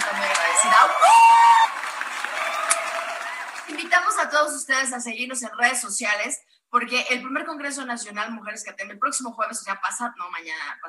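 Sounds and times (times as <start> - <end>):
audience applause: 0.0 - 3.9
speech: 3.8 - 10.8.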